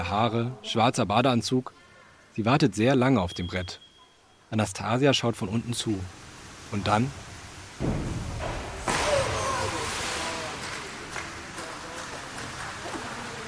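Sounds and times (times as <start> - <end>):
speech: 0.0 - 1.8, 2.4 - 3.8, 4.5 - 7.2, 7.8 - 8.3
spraying churning water splashing: 5.7 - 13.4
diver's back slapping flat onto water: 7.8 - 13.2.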